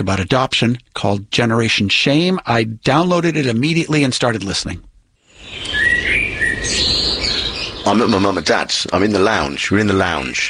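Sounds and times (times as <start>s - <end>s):
speech: 0.0s - 5.8s, 7.8s - 10.4s
birds chirping at a garden bird feeder: 5.3s - 9.4s.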